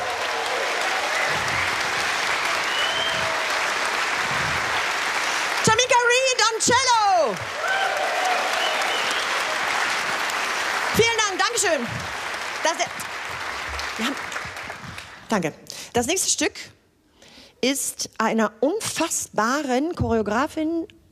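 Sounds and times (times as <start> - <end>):
audience applause: 0.0 - 15.2
speech: 6.6 - 7.6, 11.6 - 13.1, 15.3 - 16.8, 17.6 - 21.1.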